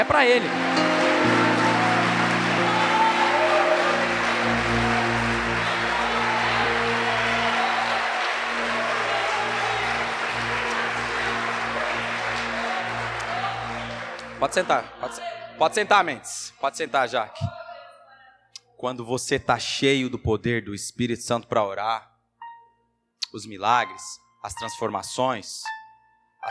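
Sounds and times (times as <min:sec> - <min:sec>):
speech: 0:00.0 - 0:01.4, 0:14.4 - 0:17.5, 0:18.8 - 0:22.1, 0:23.3 - 0:25.8
audience applauding: 0:00.0 - 0:16.0.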